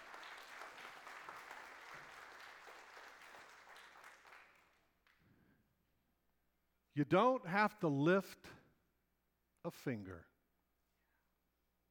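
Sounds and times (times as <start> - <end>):
audience applause: 0.0 - 4.8
speech: 7.0 - 8.6, 9.6 - 10.3.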